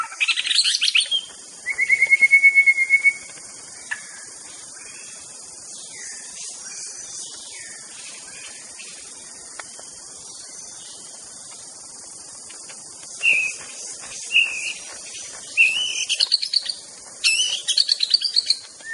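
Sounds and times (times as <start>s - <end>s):
wild white-rumped shama singing in forest: 0.2s - 3.3s, 13.2s - 13.6s, 15.6s - 18.9s.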